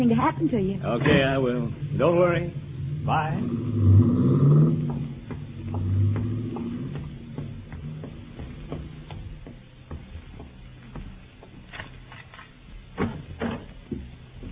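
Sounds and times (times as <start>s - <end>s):
speech: 0.0s - 4.7s
car engine revving and pulling away: 0.8s - 9.6s.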